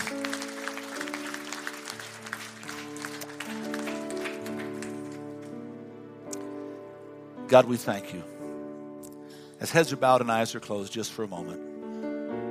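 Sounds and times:
audience hand clapping: 0.0s - 5.6s
speech: 7.5s - 8.3s, 9.6s - 11.7s.

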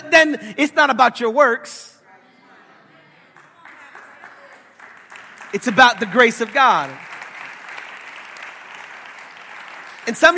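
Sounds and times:
speech: 0.1s - 2.0s, 5.5s - 7.0s, 10.1s - 10.3s
hand clapping: 3.3s - 10.3s.

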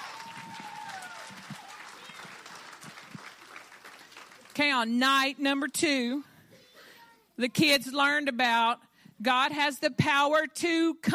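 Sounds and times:
whistling and cheering in a crowd: 0.0s - 2.6s
audience hand clapping: 0.0s - 4.8s
speech: 4.6s - 6.3s, 7.4s - 11.1s.

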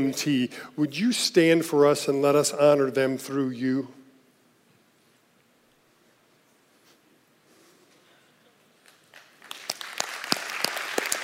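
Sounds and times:
speech: 0.0s - 4.0s
audience applause: 8.9s - 11.2s.

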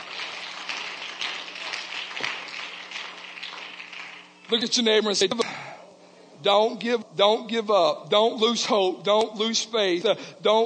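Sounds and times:
hand clap of praise: 0.0s - 4.3s
speech: 4.5s - 5.7s, 6.4s - 10.6s.

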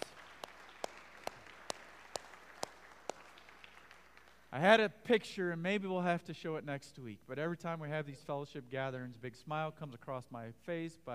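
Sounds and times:
audience applause: 0.0s - 4.5s
speech: 4.6s - 11.1s.

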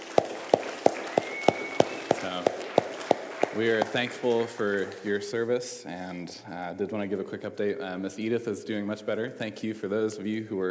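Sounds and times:
round of applause for volunteers: 0.0s - 5.4s
speech: 2.2s - 2.5s, 3.6s - 10.6s.

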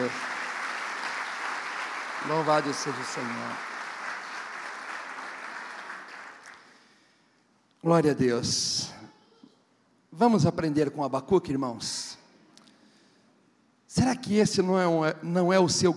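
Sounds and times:
audience applause: 0.0s - 6.8s
speech: 0.1s - 0.3s, 2.2s - 3.8s, 7.8s - 9.0s, 10.2s - 12.2s, 13.9s - 15.9s.

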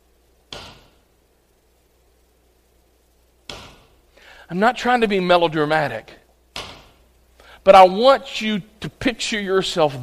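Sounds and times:
hammering nails: 0.5s - 1.0s, 3.5s - 3.9s
speech: 4.5s - 6.2s, 7.6s - 10.0s.

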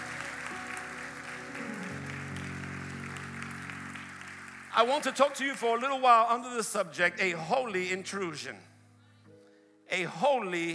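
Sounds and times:
audience applause: 0.0s - 6.0s
speech: 4.8s - 8.7s, 9.9s - 10.7s.

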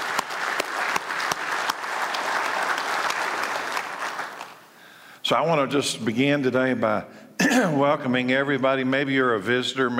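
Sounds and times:
audience applause for the performers: 0.0s - 4.6s
speech: 5.3s - 9.9s.

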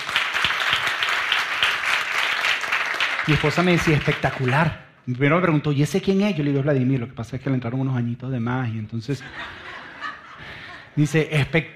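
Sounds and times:
audience applause: 0.0s - 4.8s
speech: 3.2s - 9.6s, 11.0s - 11.7s
laughter: 9.1s - 11.0s.

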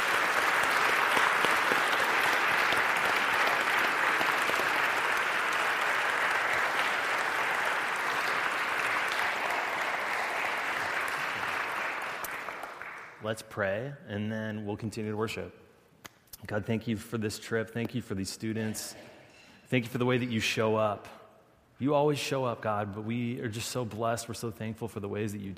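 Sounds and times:
audience applause: 0.0s - 13.2s
speech: 13.3s - 15.6s, 16.5s - 19.1s, 19.7s - 21.2s, 21.8s - 25.5s.

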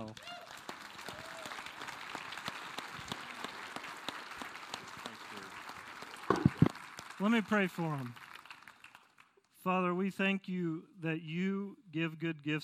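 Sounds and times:
audience applause: 0.0s - 9.4s
speech: 7.2s - 8.2s, 9.6s - 12.6s.

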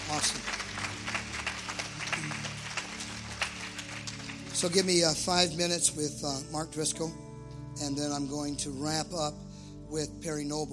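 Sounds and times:
audience applause: 0.0s - 5.2s
speech: 0.1s - 0.5s, 4.6s - 10.7s.

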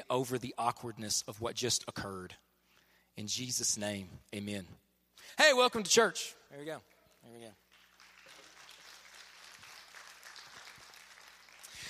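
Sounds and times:
speech: 0.0s - 2.5s, 3.2s - 7.6s
sparse half-hearted audience clapping: 6.9s - 11.8s.

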